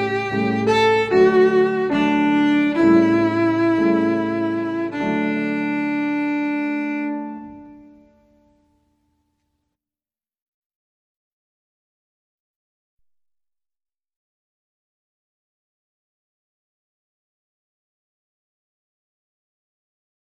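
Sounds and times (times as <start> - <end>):
folk song: 0.0 - 7.6.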